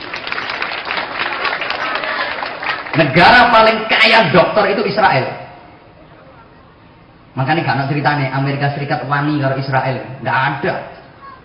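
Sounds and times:
audience applause: 0:00.0 - 0:03.2
speech: 0:03.0 - 0:05.4, 0:07.4 - 0:11.0.

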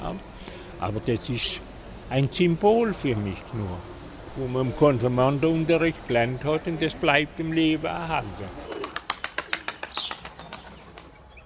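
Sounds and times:
speech: 0:00.1 - 0:08.6
pigeons flapping wings: 0:08.6 - 0:11.2.

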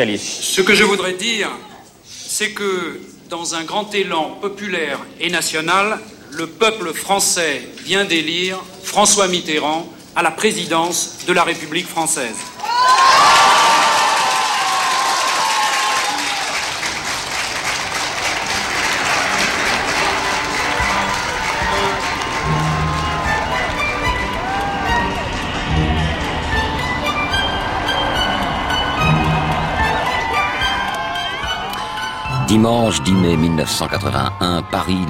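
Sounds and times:
speech: 0:00.0 - 0:01.7, 0:02.3 - 0:13.3, 0:32.5 - 0:35.0
crowd cheering and shouting in the street: 0:12.4 - 0:35.0.

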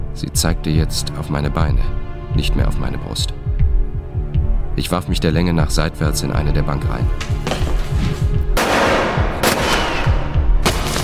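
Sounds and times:
speech: 0:00.2 - 0:03.4, 0:04.8 - 0:08.2
gunshots fired in a church: 0:08.6 - 0:11.0.

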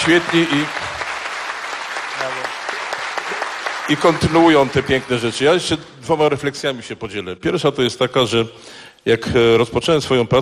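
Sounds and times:
speech: 0:00.0 - 0:00.8, 0:03.9 - 0:10.3
audience applause for a family from Busko: 0:00.0 - 0:05.7.

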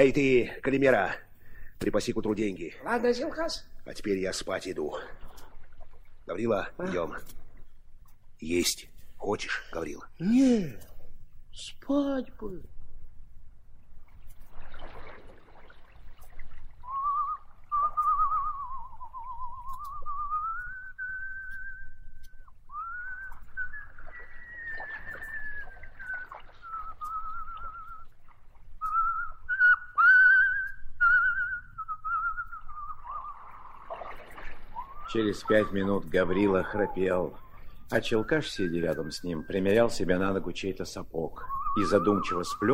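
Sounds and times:
speech: 0:00.0 - 0:01.2, 0:01.8 - 0:05.2, 0:06.3 - 0:07.4, 0:08.4 - 0:10.9, 0:11.6 - 0:12.7, 0:35.1 - 0:42.7
low noise: 0:00.0 - 0:42.7
person whistling a sad tune through teeth: 0:16.8 - 0:28.2, 0:28.8 - 0:33.7, 0:34.7 - 0:40.3, 0:41.4 - 0:42.7.

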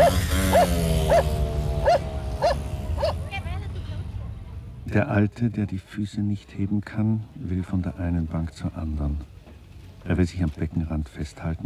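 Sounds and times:
dog barking: 0:00.0 - 0:03.3
speech: 0:05.0 - 0:09.4, 0:10.0 - 0:11.6.

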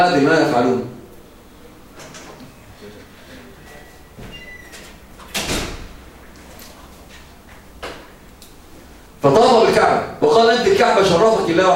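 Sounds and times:
speech: 0:00.0 - 0:01.0, 0:09.2 - 0:11.7
low steady hum: 0:00.0 - 0:11.7
door swinging shut with a muffled thud: 0:04.2 - 0:06.0.

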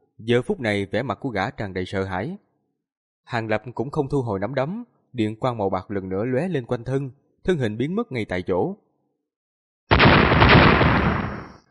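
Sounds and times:
speech: 0:00.2 - 0:02.4, 0:03.2 - 0:08.8
loud distant explosions from the far horizon: 0:09.9 - 0:11.6.

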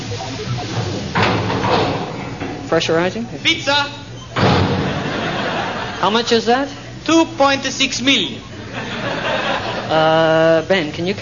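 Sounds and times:
door opening: 0:00.0 - 0:02.7, 0:04.1 - 0:05.2
speech: 0:02.7 - 0:04.0, 0:06.0 - 0:08.5, 0:09.9 - 0:11.2
laughter: 0:04.6 - 0:07.0, 0:08.2 - 0:10.4.

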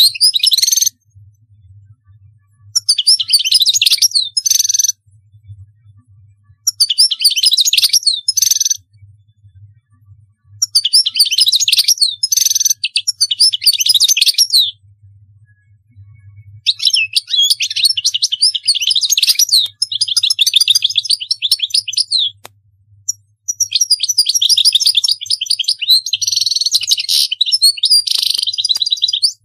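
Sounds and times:
European goldfinch song: 0:00.0 - 0:00.9, 0:02.8 - 0:04.9, 0:06.6 - 0:08.8, 0:10.6 - 0:14.8, 0:16.6 - 0:22.4, 0:23.5 - 0:29.4.

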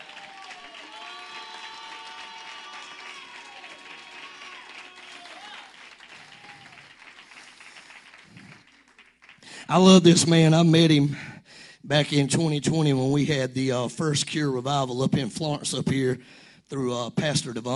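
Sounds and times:
audience applause: 0:00.0 - 0:09.9
speech: 0:09.7 - 0:11.3, 0:11.9 - 0:17.7.

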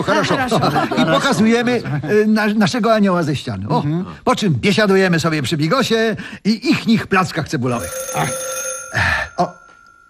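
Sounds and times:
laughter: 0:00.0 - 0:02.3
speech: 0:00.0 - 0:09.6
telephone ringing: 0:07.7 - 0:10.0.

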